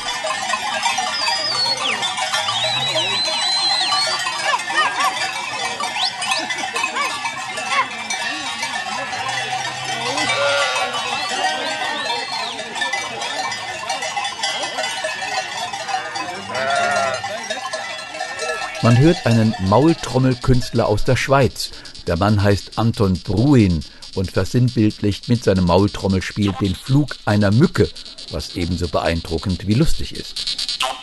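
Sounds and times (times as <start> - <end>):
sheep bells clanking in the Schnals Valley, South Tyrol: 0.0 - 31.0
laughter: 1.1 - 13.8, 14.4 - 30.0
sheep bleating: 8.8 - 12.2, 15.9 - 17.3, 18.3 - 20.8
speech: 18.8 - 30.6.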